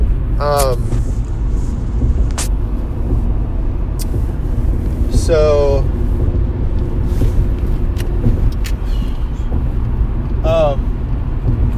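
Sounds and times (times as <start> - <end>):
car interior road and engine rumble while driving: 0.0 - 11.7
speech: 0.4 - 1.1
squeaky chirp: 8.8 - 9.5.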